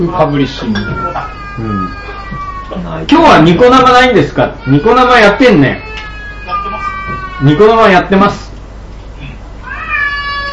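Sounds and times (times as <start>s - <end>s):
speech: 0.0s - 6.0s, 7.4s - 8.4s
child crying: 0.1s - 3.0s, 4.4s - 7.7s, 9.7s - 10.5s.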